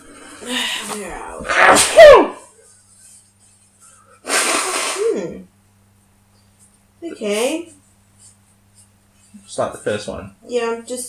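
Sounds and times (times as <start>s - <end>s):
speech: 0.4s - 2.4s, 7.2s - 7.7s, 9.6s - 11.0s
nose blowing: 4.2s - 5.3s.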